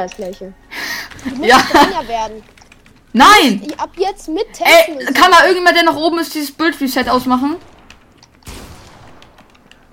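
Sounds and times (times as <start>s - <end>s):
speech: 0.0s - 7.7s
laughter: 1.2s - 2.2s
gunfire in a video game: 6.8s - 9.9s.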